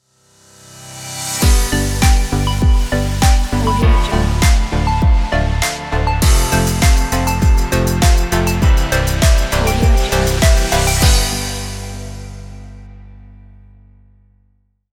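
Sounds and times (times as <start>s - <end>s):
calm dance music logo jingle: 1.4s - 12.9s.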